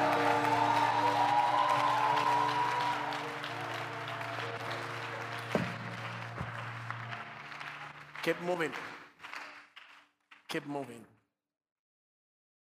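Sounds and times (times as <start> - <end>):
crowd clapping: 0.0 - 11.1
speech: 8.2 - 9.0, 10.5 - 11.2.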